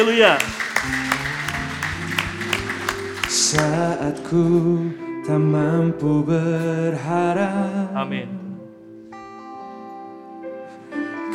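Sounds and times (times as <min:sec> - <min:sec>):
speech: 0:00.0 - 0:01.2, 0:03.3 - 0:08.4
audience clapping in rhythm: 0:00.0 - 0:04.0.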